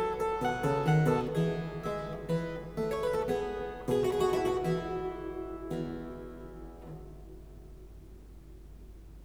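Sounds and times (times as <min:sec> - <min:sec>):
allegro in F major keyboard piece: 0:00.0 - 0:07.0.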